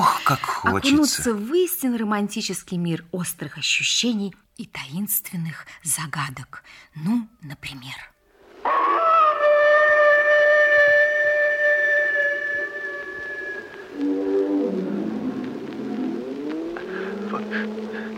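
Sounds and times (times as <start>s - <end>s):
speech: 0.3s - 8.1s, 17.4s - 18.1s
eerie dog-like howl on the moor: 8.6s - 18.1s.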